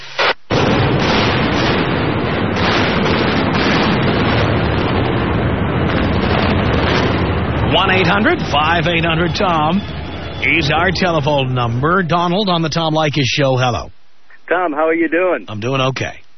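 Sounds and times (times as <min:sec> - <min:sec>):
demolition explosion of the Kingdome stadium in Seattle: 0:00.5 - 0:13.2
speech: 0:08.0 - 0:16.2.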